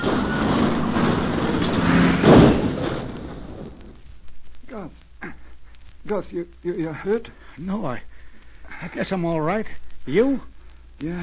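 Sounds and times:
car skidding and overturning on a snow-covered road: 0.0s - 3.9s
speech: 6.1s - 8.2s, 8.8s - 11.2s.

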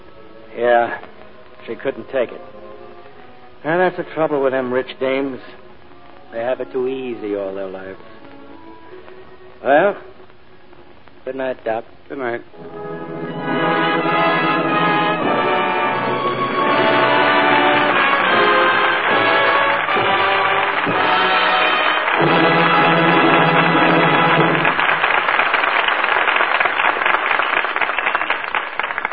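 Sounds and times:
speech: 0.6s - 2.6s, 3.6s - 5.6s, 6.3s - 8.1s, 9.6s - 10.1s, 11.2s - 13.6s
audience applause after radio play: 13.6s - 29.1s.

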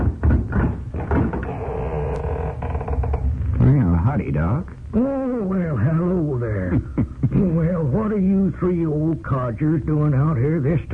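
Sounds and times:
wooden clunks and rattles of the door: 0.0s - 1.8s
door opening: 0.0s - 3.7s
low rumbling creak: 0.6s - 3.9s
speech: 4.1s - 10.9s.

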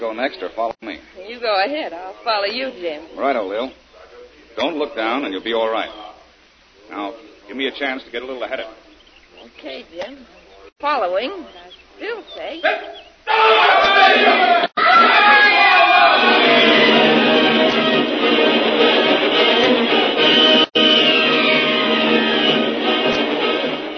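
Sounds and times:
speech: 0.0s - 3.8s, 4.6s - 6.1s, 6.9s - 8.8s, 9.4s - 14.7s
natives screaming in terror as rope bridge collapses: 12.4s - 19.0s, 19.6s - 23.9s.

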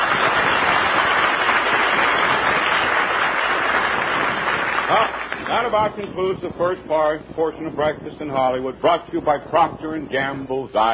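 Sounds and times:
studio audience cheering and applause: 0.0s - 5.5s
speech: 5.6s - 10.9s.

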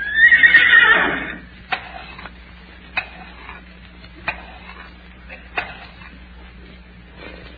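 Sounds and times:
horse whinnying: 0.0s - 1.5s
faint hum: 0.0s - 7.5s.

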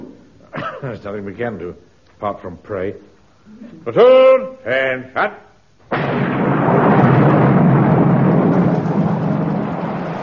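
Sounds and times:
speech: 0.8s - 6.2s
thunder: 5.9s - 10.2s
heavy rain: 6.9s - 10.2s.

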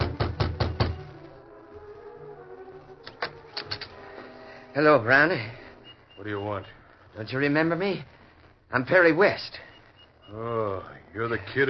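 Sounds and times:
knocking on a wooden cabin door: 0.0s - 1.1s
speech: 4.8s - 5.6s, 6.2s - 8.1s, 8.7s - 9.7s, 10.3s - 11.6s.

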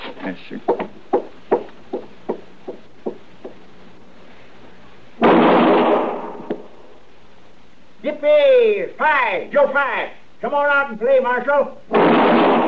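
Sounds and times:
speech: 0.2s - 0.9s, 8.8s - 12.4s
soft knocks: 0.7s - 3.6s
gunshot in an alley: 5.2s - 6.7s, 11.9s - 12.6s.

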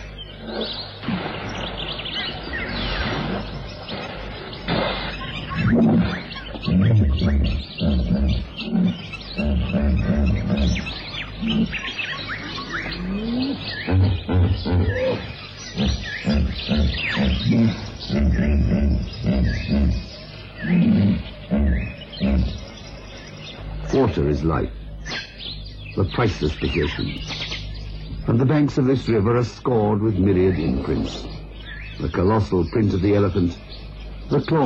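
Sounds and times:
faint bird chirps: 0.0s - 34.6s
hippopotamus snorting and grunting: 0.3s - 1.9s, 2.6s - 12.0s, 12.7s - 22.7s
speech: 24.4s - 24.8s, 26.0s - 27.4s, 28.2s - 31.4s, 32.0s - 33.6s, 34.3s - 34.6s.

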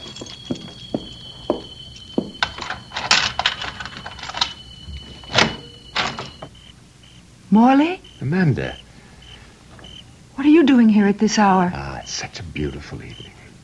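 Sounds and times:
keys jingling and scraping in a lock: 0.0s - 6.4s
faint high-pitched whine: 0.0s - 13.6s
speech: 7.5s - 8.8s, 10.4s - 13.3s.

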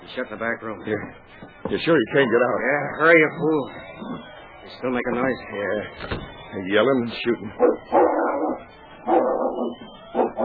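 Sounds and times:
speech: 0.2s - 9.8s
dog barking and whimpering: 7.6s - 10.4s.

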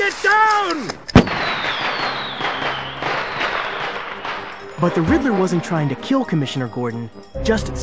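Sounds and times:
joke bomb exploding: 1.1s - 6.1s
descending whistle: 1.3s - 4.8s
speech: 4.8s - 7.8s.

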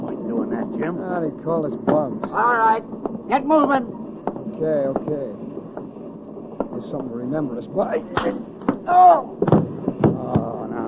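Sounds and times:
voices: 0.0s - 10.8s
speech: 0.7s - 5.5s, 6.8s - 9.7s
punches landing: 8.1s - 10.6s.

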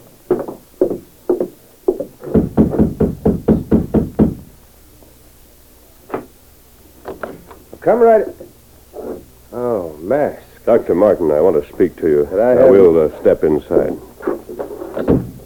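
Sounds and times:
knocking on a door: 0.4s - 4.6s
speech: 7.9s - 8.4s, 10.1s - 14.1s.

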